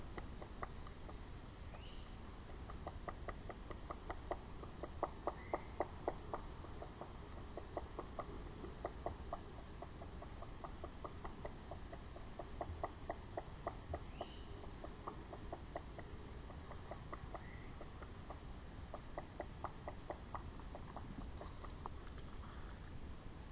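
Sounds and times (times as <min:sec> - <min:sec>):
Red-bellied Woodpecker: 0:00.0 - 0:22.8
birds at Indian Springs: 0:00.0 - 0:23.5.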